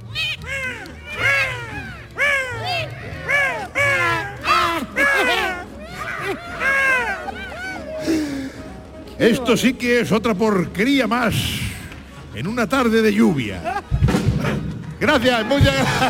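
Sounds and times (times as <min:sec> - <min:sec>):
griffon vultures calling taking flight: 0:00.0 - 0:07.9
laughter: 0:00.0 - 0:09.8, 0:13.2 - 0:16.0
speech: 0:09.2 - 0:11.6, 0:12.4 - 0:13.8, 0:15.0 - 0:16.0.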